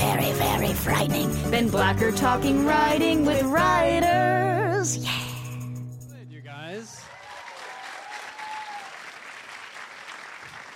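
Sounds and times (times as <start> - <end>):
speech: 0.8 - 5.2
audience applause: 7.0 - 10.7.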